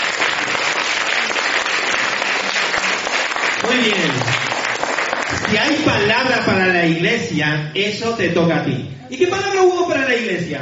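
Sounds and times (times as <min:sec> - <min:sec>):
audience applause: 0:00.0 - 0:05.8
speech: 0:05.6 - 0:10.5.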